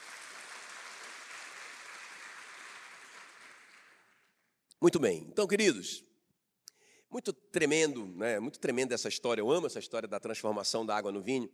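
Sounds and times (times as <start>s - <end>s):
audience applauding: 0.0s - 4.3s
speech: 4.8s - 6.1s, 7.1s - 11.5s.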